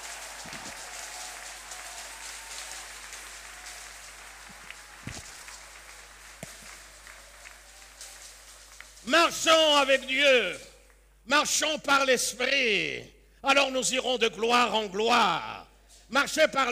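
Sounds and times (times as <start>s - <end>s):
audience applause: 0.0s - 10.1s
speech: 9.1s - 10.7s, 11.3s - 16.6s.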